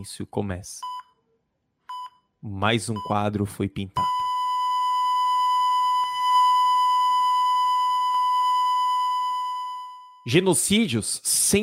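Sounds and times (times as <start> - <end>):
speech: 0.0 - 1.0, 2.4 - 4.2, 10.3 - 11.6
hospital monitor flatline tone: 3.0 - 3.4, 4.0 - 10.3.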